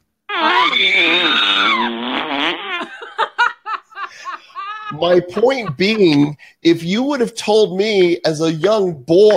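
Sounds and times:
comic fart sound effect: 0.3 - 3.0
laughter: 2.8 - 6.3
speech: 4.9 - 9.3.

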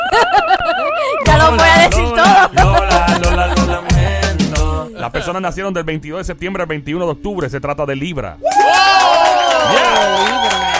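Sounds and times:
laughter: 0.0 - 5.4
speech: 5.0 - 9.0
audience applause and cheering: 8.4 - 10.7.

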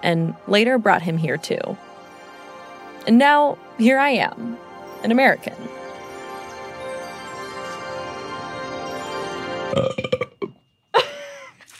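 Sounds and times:
speech: 0.0 - 1.8, 3.1 - 5.8, 9.8 - 10.2
loud drawn-out burp: 9.7 - 10.6.

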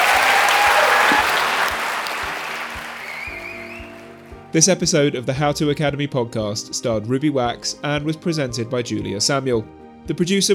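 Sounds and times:
large audience applauding: 0.0 - 4.3
speech: 4.5 - 10.5.

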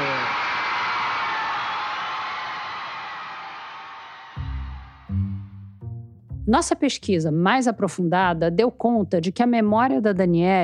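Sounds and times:
audience applause: 0.0 - 5.1
speech: 6.5 - 10.6.

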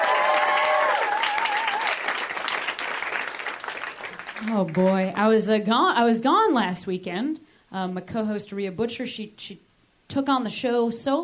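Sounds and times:
audience applause for comedians at a live stand-up show: 0.0 - 5.1
speech: 4.4 - 11.2.

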